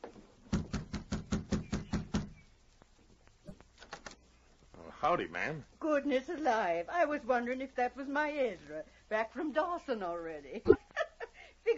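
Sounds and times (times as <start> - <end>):
knocking on a cabin door: 0.5 - 2.4
speech: 5.0 - 10.8.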